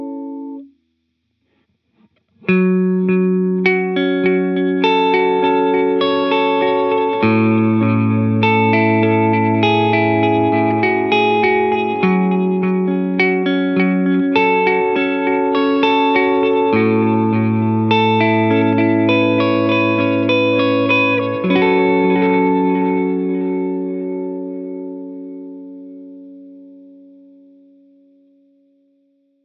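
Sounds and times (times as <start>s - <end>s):
Echoplex tape echo effect: 2.4s - 25.9s.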